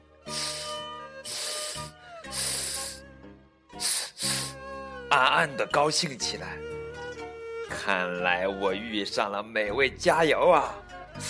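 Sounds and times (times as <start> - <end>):
python hissing: 0.2 - 3.2, 3.8 - 4.8
speech: 5.2 - 6.8, 7.7 - 10.8.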